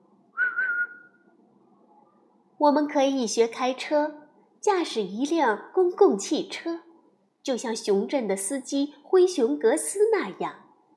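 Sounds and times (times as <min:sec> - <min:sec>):
shrill police whistle blast: 0:00.4 - 0:01.2
speech: 0:02.6 - 0:10.6.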